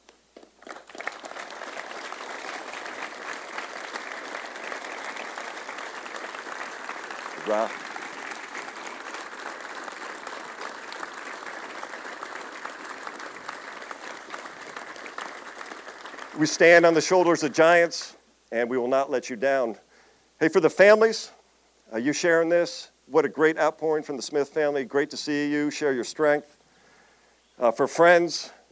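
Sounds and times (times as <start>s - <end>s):
standing audience applause: 0.4s - 17.6s
speech: 7.5s - 7.9s, 16.4s - 19.8s, 20.4s - 26.6s, 27.6s - 28.6s.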